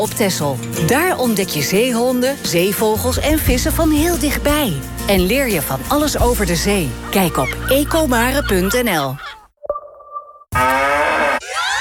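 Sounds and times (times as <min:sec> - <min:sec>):
speech: 0:00.0 - 0:09.3
cow mooing: 0:10.5 - 0:11.5.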